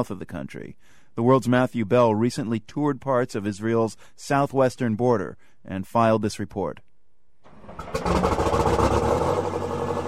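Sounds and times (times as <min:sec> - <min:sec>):
speech: 0:00.0 - 0:06.9
heavy armored vehicle engine starting and idling: 0:07.4 - 0:10.0.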